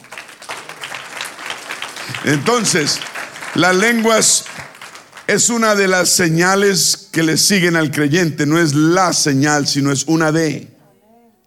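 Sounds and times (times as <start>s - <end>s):
audience applause: 0.0s - 6.2s
speech: 2.2s - 4.7s, 5.3s - 10.7s.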